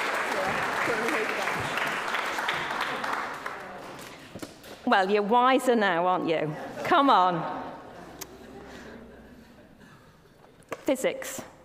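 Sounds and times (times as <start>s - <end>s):
audience clapping: 0.0s - 4.3s
speech: 4.9s - 7.6s, 10.9s - 11.5s.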